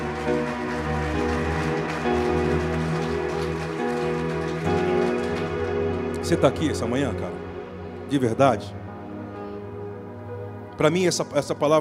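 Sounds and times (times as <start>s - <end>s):
audience applauding loudly: 0.0s - 7.2s
sustained musical chords: 0.0s - 11.7s
speech: 6.3s - 7.5s, 8.1s - 8.8s, 10.8s - 11.7s.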